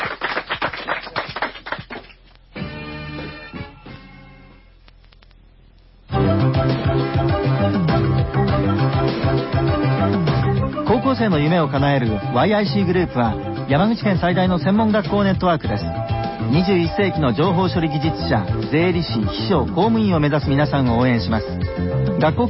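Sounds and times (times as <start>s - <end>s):
applause: 0.0s - 2.2s
instrumental music: 2.5s - 4.8s, 6.1s - 22.4s
speech: 11.2s - 22.4s.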